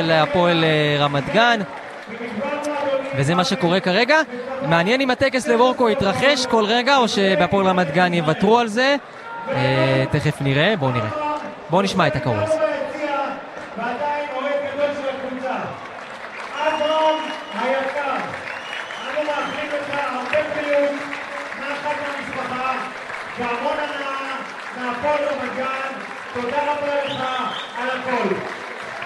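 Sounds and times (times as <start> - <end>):
speech: 0.0 - 12.7
Beitar Jerusalem fans applauding in stadium: 0.0 - 29.0.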